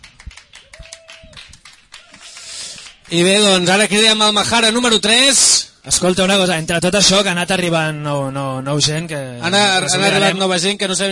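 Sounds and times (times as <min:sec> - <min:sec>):
scattered uneven hand claps: 0:00.0 - 0:03.9
speech: 0:03.1 - 0:11.1.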